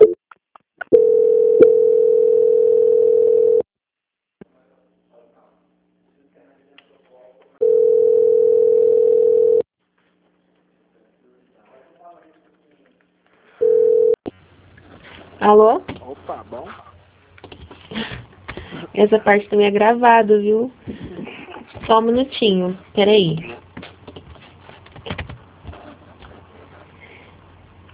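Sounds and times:
mid-pitched telephone tone during a call transfer: 1.0 - 3.6, 7.6 - 9.6, 13.6 - 14.2
speech: 15.5 - 16.8, 19.0 - 20.8, 21.9 - 23.5.

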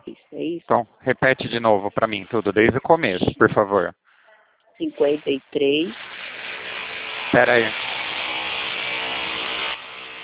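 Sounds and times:
speech: 0.4 - 4.0, 4.8 - 6.2, 7.3 - 7.8
construction workers drilling in an office: 5.7 - 10.2.

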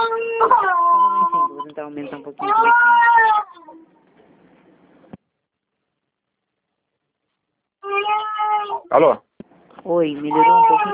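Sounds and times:
baby crying: 0.0 - 1.6, 2.4 - 3.8, 7.8 - 8.9, 10.2 - 10.9
speech: 1.9 - 3.2, 8.9 - 10.9.

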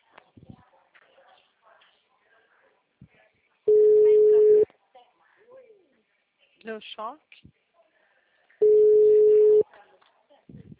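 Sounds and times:
faint scattered noises: 0.0 - 10.7
steady telephone tone during a call attempt: 3.7 - 4.6, 8.6 - 9.6
speech: 6.6 - 7.6.

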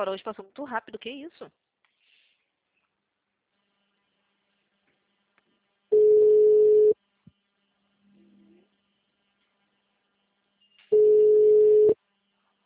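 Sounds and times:
speech: 0.0 - 1.6
unanswered outgoing telephone call ringback tone: 5.9 - 7.0, 10.9 - 12.0.

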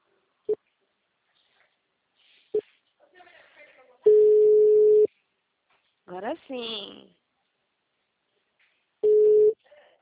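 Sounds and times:
telephone tone after a dropped phone call: 4.1 - 5.1, 9.0 - 9.6
speech: 6.2 - 7.2.

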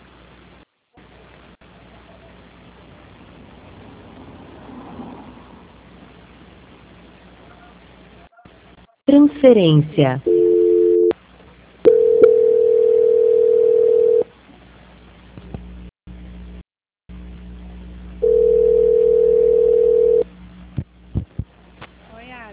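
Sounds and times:
speech: 9.1 - 10.3
telephone line tone not connecting: 10.3 - 11.1, 11.9 - 14.2, 18.2 - 20.2.

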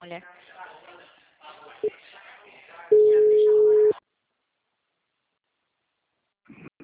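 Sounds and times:
telephone busy tone after a dropped call: 2.9 - 3.9.

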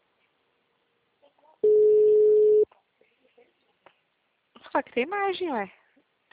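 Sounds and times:
telephone tone beep while a call is being placed: 1.6 - 2.7
speech: 4.8 - 6.3.

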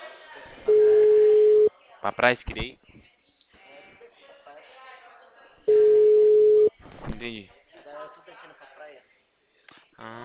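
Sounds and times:
telephone ringback tone on an unanswered call: 0.7 - 1.7, 5.7 - 6.7
speech: 2.0 - 3.1, 7.2 - 9.0.

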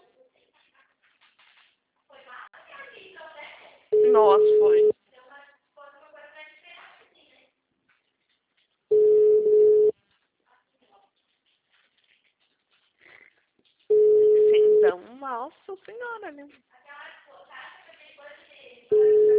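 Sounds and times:
telephone busy signal: 4.0 - 4.9, 8.9 - 9.9, 13.9 - 15.0, 18.9 - 19.3
speech: 4.1 - 4.9, 15.5 - 16.8.

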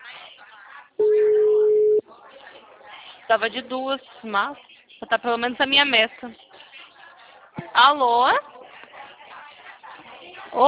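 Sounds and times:
quiet talk: 0.0 - 10.6
telephone ringback tone of an unanswered call: 1.0 - 2.0
speech: 3.3 - 6.4, 7.7 - 8.4.

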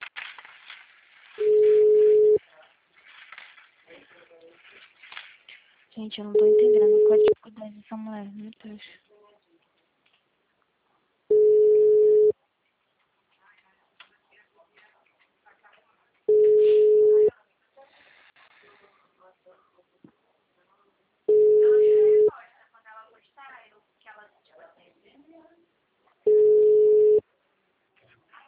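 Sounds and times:
telephone tone beeps after a dropped call: 1.4 - 2.4, 6.4 - 7.4, 11.3 - 12.3, 16.3 - 17.3, 21.3 - 22.3, 26.3 - 27.2
speech: 6.0 - 9.0.

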